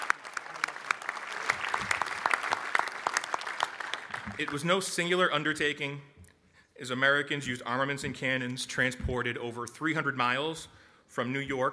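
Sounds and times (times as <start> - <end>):
audience clapping: 0.0 - 5.2
speech: 4.4 - 6.1, 6.8 - 11.7.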